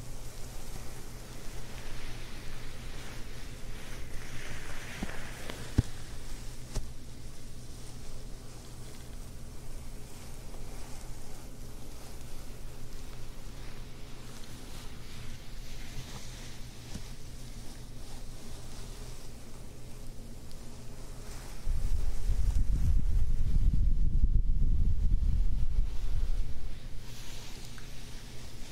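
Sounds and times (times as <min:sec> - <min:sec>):
fabric scratching and rubbing on a 3DIO microphone: 0:00.0 - 0:23.7, 0:25.0 - 0:28.7
low hum: 0:00.0 - 0:28.7
heavy low rumbling: 0:21.5 - 0:27.4.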